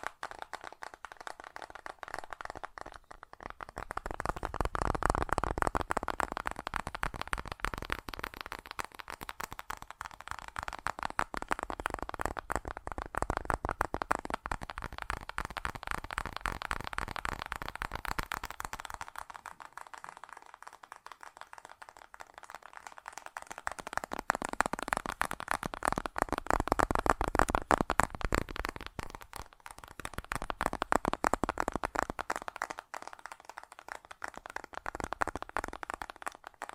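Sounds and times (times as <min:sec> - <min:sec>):
fast tapping with a dense rapid patter of tiny clicks: 0:00.0 - 0:36.7.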